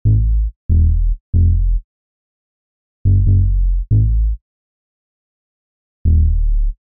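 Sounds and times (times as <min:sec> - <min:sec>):
bass: 0:00.0 - 0:01.9, 0:03.0 - 0:04.4, 0:06.0 - 0:06.8.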